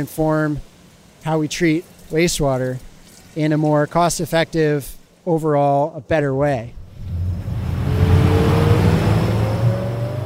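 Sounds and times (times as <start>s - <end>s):
speech: 0.0s - 6.8s
small boat speeding along the Willamette River: 6.8s - 10.2s.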